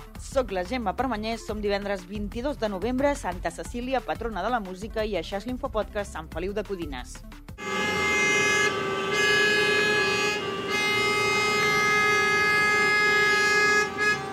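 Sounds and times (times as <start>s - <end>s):
speech: 0.4s - 7.8s
car horns honking in a traffic jam: 7.6s - 14.3s.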